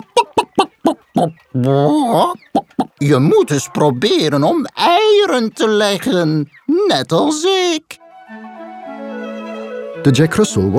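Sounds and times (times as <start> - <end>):
person imitating hen clucking and cackling: 0.0 - 5.2
speech: 1.2 - 2.4, 3.0 - 8.0, 10.0 - 10.7.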